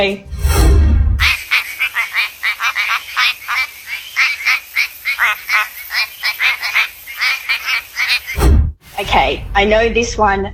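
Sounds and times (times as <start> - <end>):
speech: 0.0 - 0.3, 9.0 - 10.5
quacking frog from WA calling: 1.2 - 8.4.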